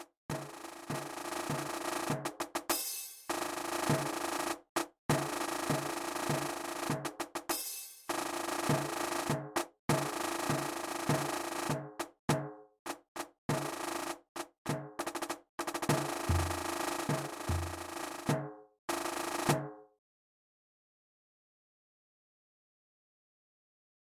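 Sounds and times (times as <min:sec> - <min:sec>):
rhythm: 0:00.0 - 0:18.4.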